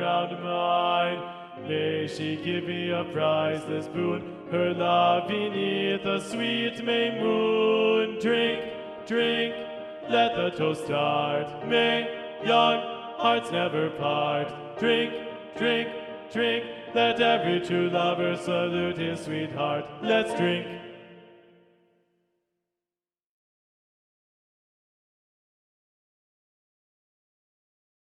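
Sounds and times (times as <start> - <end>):
male TTBB choir singing a drinking song with first bass predominant: 0.0 - 21.3.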